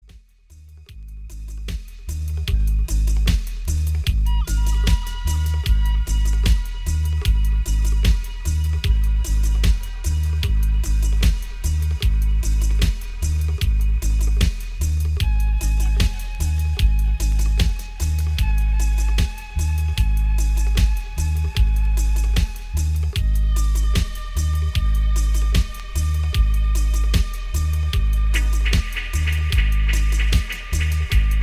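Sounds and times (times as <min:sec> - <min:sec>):
flute in dub music: 0:00.6 - 0:31.4.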